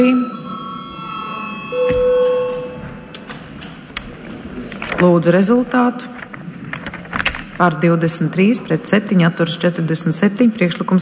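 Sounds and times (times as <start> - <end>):
parliament chamber bell before a vote: 0.0 - 3.3
speech: 5.0 - 6.2, 7.6 - 11.0.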